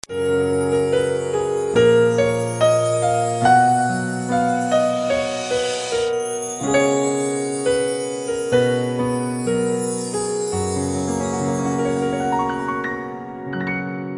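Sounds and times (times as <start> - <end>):
national song on piano: 0.0 - 14.1.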